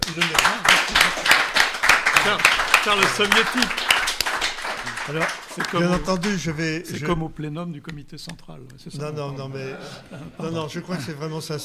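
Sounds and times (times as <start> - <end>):
audience applause: 0.0 - 6.6
speech: 0.1 - 0.6, 2.3 - 3.9, 5.0 - 11.6
laughter: 9.0 - 11.6.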